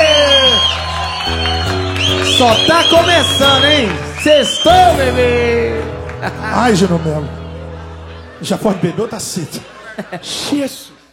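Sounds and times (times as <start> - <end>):
high whoop sliding downward: 0.0 - 2.2
crowd cheering and applauding: 0.0 - 9.5
speech: 2.4 - 7.4, 8.4 - 10.9
laughter: 6.1 - 10.9.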